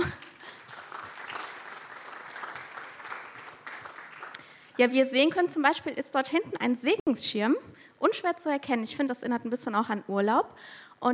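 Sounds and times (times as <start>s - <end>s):
audience applause: 0.0s - 4.8s
speech: 4.8s - 11.1s.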